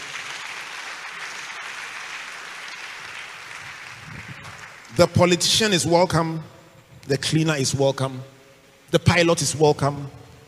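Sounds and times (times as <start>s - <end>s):
church congregation clapping during a sermon: 0.0s - 5.6s
speech: 5.0s - 10.2s.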